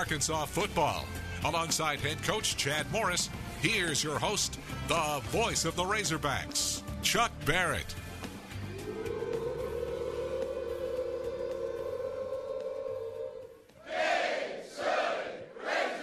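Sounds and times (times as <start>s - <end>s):
speech: 0.0s - 8.0s
football fans doing a team cheer at a football event: 8.6s - 16.0s.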